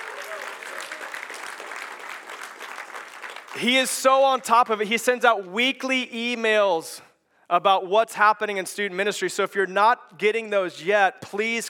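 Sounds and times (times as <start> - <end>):
audience clapping: 0.0 - 4.4
speech: 3.6 - 11.6.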